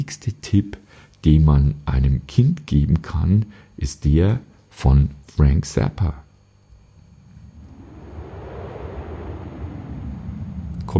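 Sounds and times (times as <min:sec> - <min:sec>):
speech: 0:00.0 - 0:06.2
wind blowing: 0:06.7 - 0:10.9.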